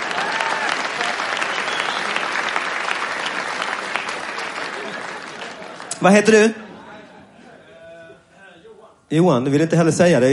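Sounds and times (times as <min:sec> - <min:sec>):
audience applause: 0:00.0 - 0:06.2
speech: 0:06.0 - 0:06.6, 0:09.1 - 0:10.3.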